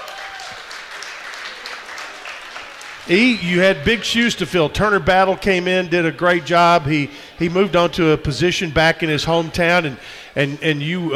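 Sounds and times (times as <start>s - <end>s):
crowd applause: 0.0s - 4.5s
speech: 3.0s - 11.1s.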